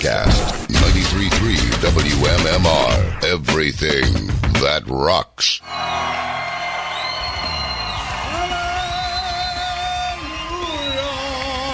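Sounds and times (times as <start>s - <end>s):
speech: 1.2s - 6.0s
live pub crowd cheering and whooping: 5.6s - 11.7s.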